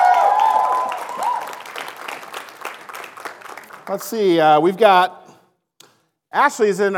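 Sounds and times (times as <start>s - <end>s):
church audience applause welcoming a new member: 0.0s - 4.2s
speech: 3.9s - 5.2s, 6.3s - 6.9s.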